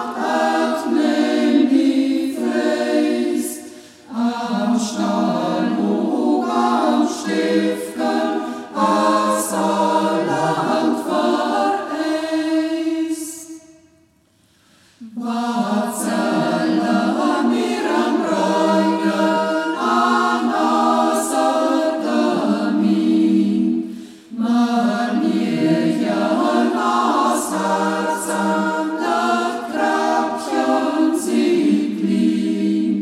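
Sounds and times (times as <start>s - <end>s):
choir singing in Reußmarkt local dialect: 0.0s - 13.8s, 15.0s - 33.0s.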